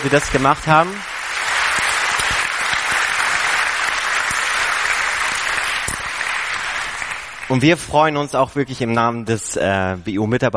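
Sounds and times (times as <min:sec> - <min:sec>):
speech: 0:00.0 - 0:01.1, 0:07.5 - 0:10.5
audience applause: 0:00.0 - 0:08.4.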